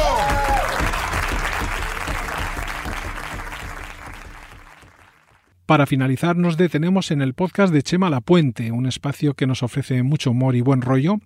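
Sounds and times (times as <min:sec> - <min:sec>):
whistle or cheer: 0:00.0 - 0:01.7
crowd applauding: 0:00.0 - 0:05.5
speech: 0:05.7 - 0:11.2.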